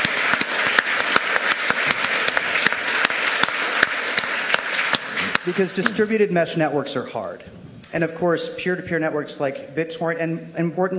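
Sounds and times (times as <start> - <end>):
audience applause: 0.0 - 6.0
speech: 5.5 - 10.9.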